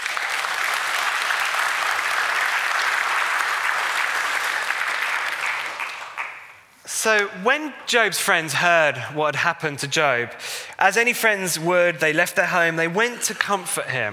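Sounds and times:
audience applause: 0:00.0 - 0:06.7
speech: 0:07.0 - 0:14.1.

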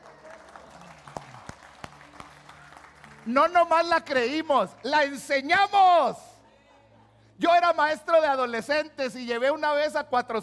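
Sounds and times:
audience applause: 0:00.0 - 0:03.6
speech: 0:03.2 - 0:06.3, 0:07.4 - 0:10.4.

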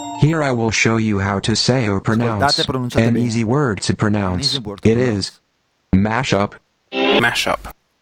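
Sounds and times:
speech: 0:00.3 - 0:07.7
radio segment jingle with plucky synth notes and chimes: 0:01.7 - 0:03.5, 0:04.3 - 0:05.1.

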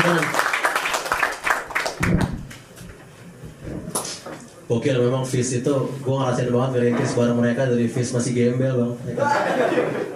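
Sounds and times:
applause: 0:00.0 - 0:02.5
speech: 0:04.7 - 0:10.1
laughter: 0:09.2 - 0:10.1.

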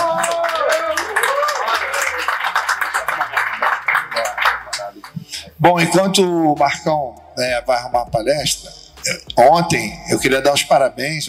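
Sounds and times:
audience applause: 0:00.0 - 0:05.1
speech: 0:05.6 - 0:11.2.

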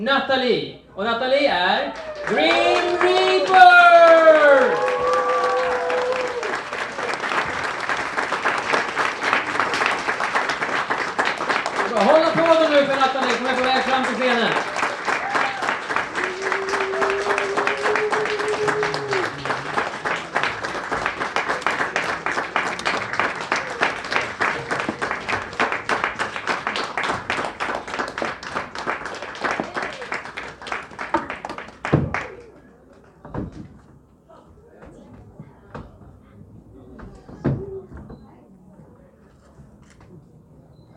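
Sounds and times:
speech: 0:00.0 - 0:04.9, 0:12.8 - 0:14.7
audience cheering a contestant onto the stage at a live event: 0:01.9 - 0:08.0, 0:11.7 - 0:26.8
audience clapping as a contestant walks onto the stage: 0:01.9 - 0:33.2.

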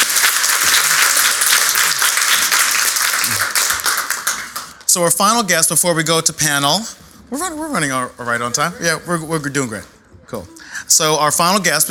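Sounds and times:
audience applause: 0:00.0 - 0:04.8
speech: 0:05.0 - 0:11.8.

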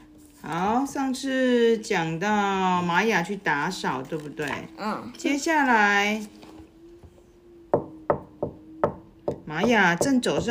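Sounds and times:
speech: 0:00.5 - 0:06.4, 0:09.5 - 0:10.4
knocking on a door: 0:07.7 - 0:10.4.

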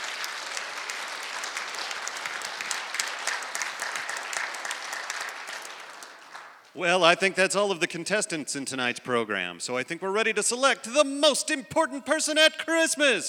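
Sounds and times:
audience applause: 0:00.0 - 0:06.8
speech: 0:06.8 - 0:13.2.

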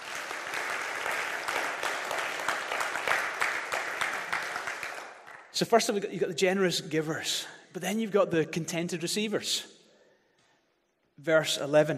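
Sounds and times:
audience applause: 0:00.0 - 0:05.5
speech: 0:05.6 - 0:09.7, 0:11.2 - 0:11.9.

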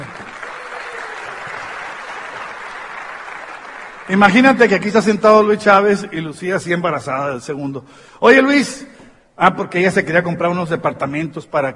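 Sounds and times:
audience applauding: 0:00.0 - 0:04.8
speech: 0:04.1 - 0:11.7.

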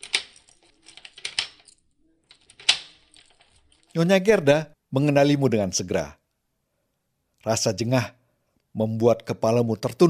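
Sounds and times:
key turning in a door lock: 0:00.0 - 0:04.0
speech: 0:04.0 - 0:06.2, 0:07.4 - 0:08.2, 0:08.8 - 0:10.0.

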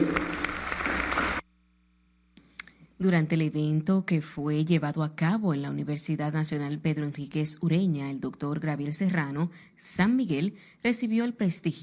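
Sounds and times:
audience applause: 0:00.0 - 0:01.4
speech: 0:03.0 - 0:11.8.

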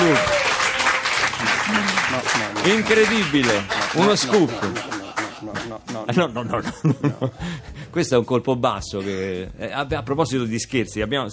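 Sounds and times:
studio audience applause: 0:00.0 - 0:06.0
laughter: 0:01.4 - 0:07.8
speech: 0:02.6 - 0:11.3.

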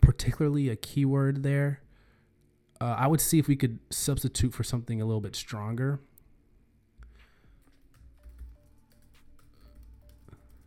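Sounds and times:
faint hum: 0:00.0 - 0:10.6
speech: 0:00.2 - 0:01.8, 0:02.8 - 0:06.1
typing on a computer keyboard: 0:07.6 - 0:10.6.

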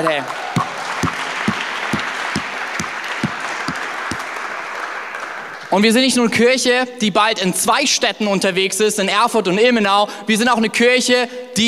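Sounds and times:
speech: 0:00.0 - 0:00.4, 0:05.7 - 0:11.6
loud crowd applause: 0:00.1 - 0:05.8.

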